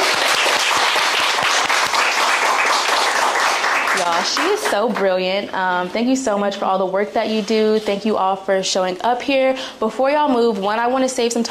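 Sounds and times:
audience applause: 0:00.0 - 0:04.8
speech: 0:04.1 - 0:11.4.

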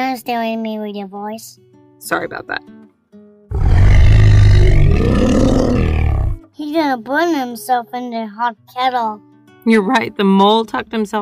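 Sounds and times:
speech: 0:00.0 - 0:02.8, 0:06.6 - 0:11.2
person imitating a bear's roar: 0:03.5 - 0:06.4.

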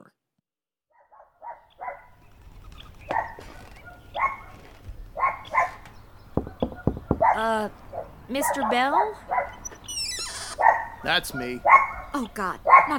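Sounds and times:
dog barking: 0:01.0 - 0:02.2, 0:03.1 - 0:09.6, 0:10.5 - 0:12.9
speech: 0:07.4 - 0:09.5, 0:11.0 - 0:12.9.

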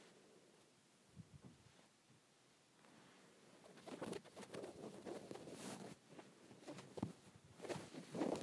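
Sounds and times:
shirt fabric scratched: 0:03.6 - 0:08.4.

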